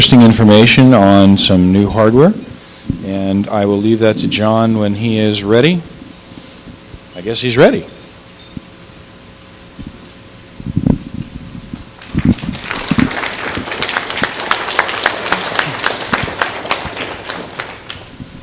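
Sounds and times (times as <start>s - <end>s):
speech: 0.0s - 2.5s, 3.1s - 5.9s, 7.2s - 8.0s
audience clapping: 12.0s - 18.4s.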